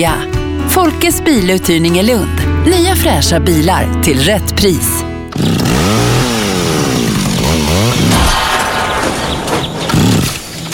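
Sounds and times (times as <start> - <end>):
speech: 0.0 - 6.1
small two-stroke garden machine engine revving and sputtering: 5.3 - 10.6.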